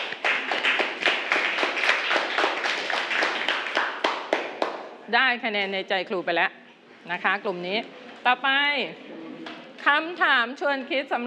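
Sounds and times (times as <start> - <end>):
classroom clapping for a group: 0.0 - 5.0
speech: 5.1 - 9.0, 9.8 - 11.2.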